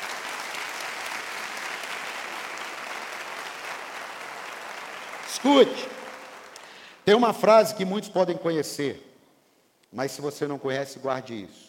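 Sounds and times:
audience applause: 0:00.0 - 0:07.0
speech: 0:05.4 - 0:06.0, 0:07.1 - 0:09.1, 0:09.9 - 0:11.6.

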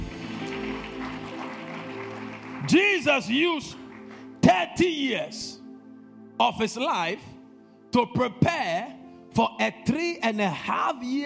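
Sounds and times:
audience clapping: 0:00.0 - 0:04.4
speech: 0:02.7 - 0:03.8, 0:04.8 - 0:05.6, 0:06.4 - 0:07.3, 0:07.9 - 0:11.2.

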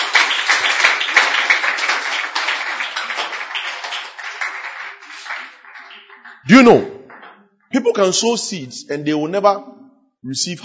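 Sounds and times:
audience clapping hands: 0:00.0 - 0:07.4
speech: 0:06.5 - 0:06.9, 0:07.8 - 0:10.6.

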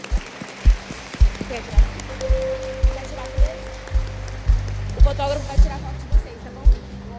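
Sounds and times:
audience applauding: 0:00.0 - 0:07.0
speech: 0:01.5 - 0:02.7, 0:05.0 - 0:06.0.

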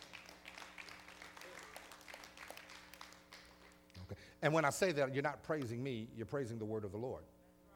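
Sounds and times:
audience clapping hands: 0:00.0 - 0:04.1
speech: 0:04.1 - 0:07.4.

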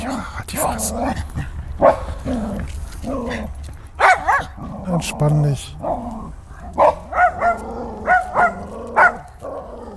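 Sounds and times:
low steady rumble: 0:00.0 - 0:09.9
speech: 0:00.5 - 0:03.5, 0:04.9 - 0:05.9
dog barking: 0:01.8 - 0:02.3, 0:04.0 - 0:04.8, 0:05.8 - 0:09.9.

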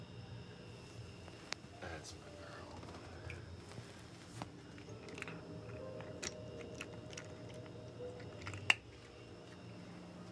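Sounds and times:
steady low hum: 0:00.0 - 0:10.3
speech: 0:01.8 - 0:02.5
cat eating a treat: 0:03.7 - 0:10.3.

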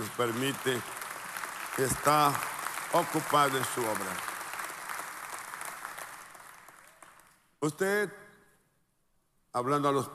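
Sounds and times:
audience applause: 0:00.0 - 0:07.4
speech: 0:00.1 - 0:01.0, 0:01.8 - 0:04.3, 0:07.6 - 0:08.2, 0:09.5 - 0:10.1.

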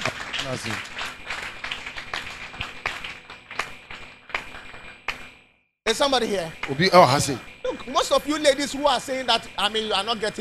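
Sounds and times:
crowd clapping hands: 0:00.0 - 0:05.3
speech: 0:00.4 - 0:01.0, 0:05.9 - 0:10.3.

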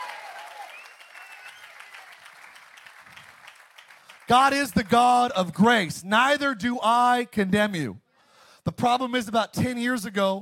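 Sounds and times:
audience hand clapping: 0:00.0 - 0:05.3
speech: 0:04.3 - 0:08.0, 0:08.7 - 0:10.4.

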